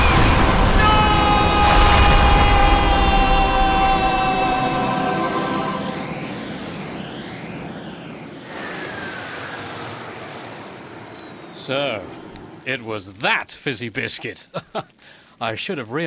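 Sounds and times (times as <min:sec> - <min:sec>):
jetpack engine roaring: 0:00.0 - 0:12.7
speech: 0:12.7 - 0:16.0.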